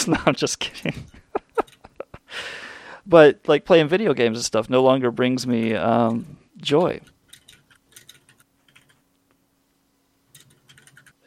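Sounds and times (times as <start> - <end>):
speech: 0.0 - 1.2, 2.4 - 7.1
faint typing on a computer keyboard taking notes: 6.8 - 9.0, 10.3 - 11.2.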